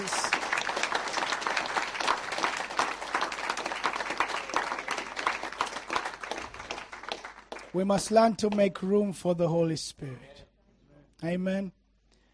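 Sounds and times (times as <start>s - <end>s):
audience applause: 0.0s - 8.6s
speech: 7.7s - 10.3s, 11.2s - 11.8s.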